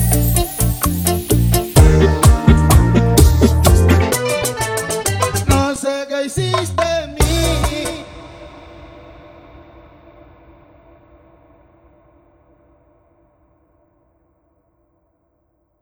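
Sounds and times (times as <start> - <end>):
salsa music: 0.0 - 8.4.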